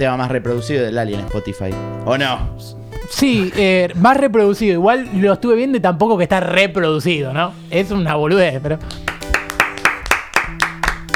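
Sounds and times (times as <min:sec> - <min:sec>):
speech: 0:00.0 - 0:09.1
solemn applause: 0:08.9 - 0:11.1.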